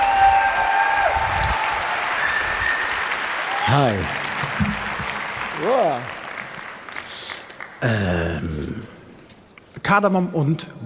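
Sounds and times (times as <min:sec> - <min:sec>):
audience applause at a congress: 0:00.0 - 0:08.0
speech: 0:03.7 - 0:04.8, 0:05.6 - 0:06.2, 0:07.8 - 0:08.9, 0:09.9 - 0:10.8.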